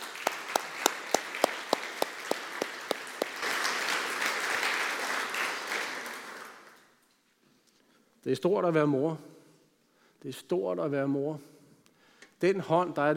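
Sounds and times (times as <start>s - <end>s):
audience applause for mothers: 0.0s - 6.8s
speech: 8.2s - 9.3s, 10.2s - 11.5s, 12.4s - 13.1s.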